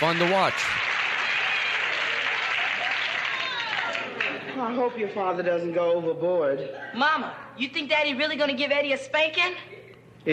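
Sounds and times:
speech: 0:00.0 - 0:00.9, 0:04.6 - 0:10.3
audience applause: 0:00.0 - 0:04.5.

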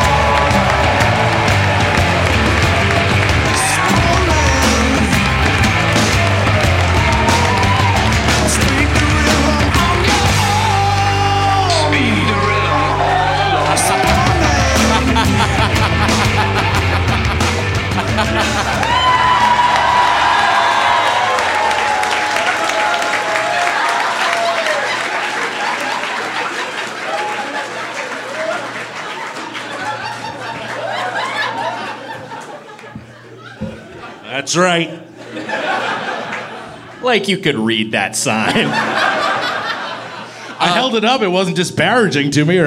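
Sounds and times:
crowd shouts at a live roast show: 0:00.0 - 0:09.0, 0:09.8 - 0:15.5, 0:18.0 - 0:25.0
laughter: 0:00.0 - 0:22.8, 0:23.6 - 0:41.2
audience cheering and applauding for a comedian's introduction at a live roast show: 0:00.0 - 0:34.0, 0:38.6 - 0:40.9
speech: 0:34.5 - 0:35.0, 0:37.1 - 0:39.3, 0:40.6 - 0:42.6.

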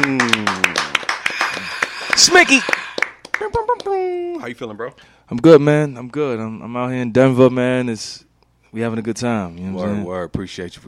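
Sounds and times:
hand claps: 0:00.0 - 0:04.0
speech: 0:02.2 - 0:02.8, 0:04.4 - 0:10.8.

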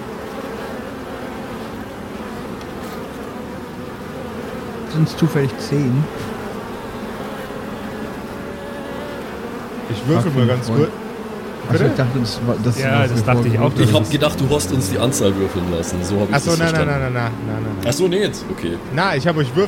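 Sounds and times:
loud buzzing of an insect swarm: 0:00.0 - 0:19.6
speech: 0:04.9 - 0:06.3, 0:10.0 - 0:11.0, 0:11.7 - 0:19.6
laughter: 0:09.8 - 0:11.0, 0:11.6 - 0:19.6.

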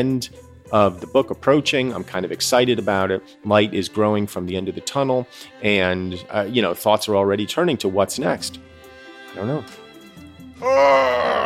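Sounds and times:
speech: 0:00.0 - 0:08.7, 0:09.4 - 0:09.8, 0:10.6 - 0:11.4
person groaning while stretching: 0:10.6 - 0:11.4.

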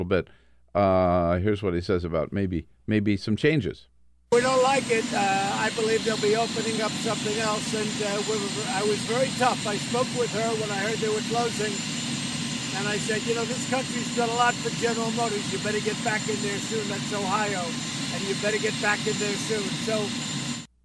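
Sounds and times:
speech: 0:00.0 - 0:12.0, 0:12.8 - 0:20.4
helicopter engine roar at a political campaign event: 0:04.3 - 0:20.7.

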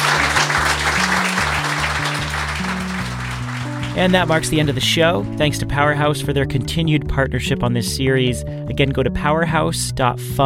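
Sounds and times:
audience applause: 0:00.0 - 0:05.3
low bass notes of music: 0:00.0 - 0:10.4
speech: 0:04.0 - 0:10.4.

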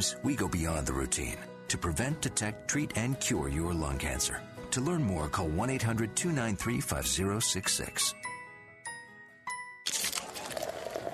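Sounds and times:
speech: 0:00.0 - 0:08.3
Coors Light beer being poured: 0:09.9 - 0:11.1.

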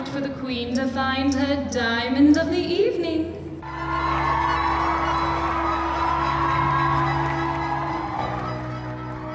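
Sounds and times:
speech: 0:00.2 - 0:04.6
crowd cheering and whooping: 0:03.6 - 0:09.3.

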